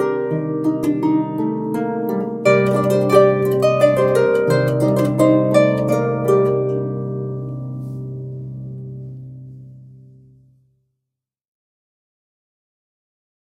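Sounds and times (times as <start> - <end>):
harp: 0.0 - 10.6.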